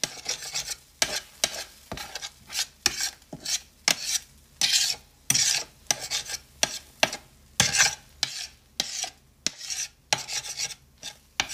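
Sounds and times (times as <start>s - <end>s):
scraping or rubbing strokes: 0.0s - 6.8s, 7.6s - 11.5s.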